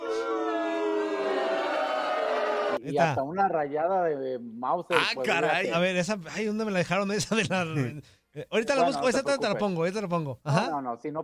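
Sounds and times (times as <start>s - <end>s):
crowd booing sound effect: 0.0s - 2.8s
speech: 2.8s - 11.2s.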